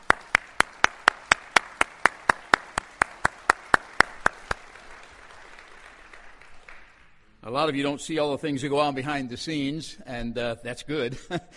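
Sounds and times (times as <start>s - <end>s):
audience applause for feast coordinator: 0.0s - 7.2s
speech: 7.5s - 11.5s.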